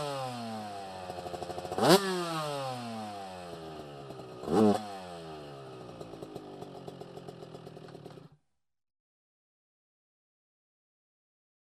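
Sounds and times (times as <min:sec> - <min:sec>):
offroad motorbike engine: 0:00.0 - 0:08.4.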